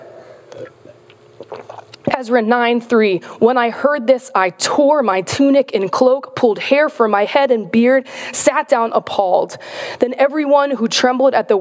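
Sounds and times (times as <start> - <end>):
drinking a sip of water: 0.2 - 2.1
speech: 2.2 - 11.5.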